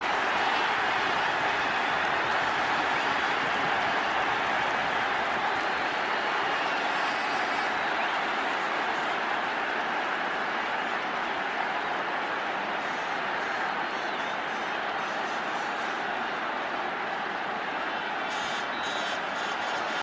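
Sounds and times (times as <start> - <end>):
crowd: 0.0 - 20.0.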